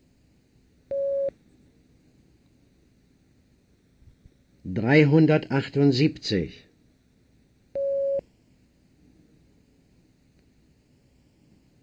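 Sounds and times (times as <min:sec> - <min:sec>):
beep prompt tone: 0:00.9 - 0:01.3, 0:07.8 - 0:08.2
speech: 0:04.7 - 0:06.7.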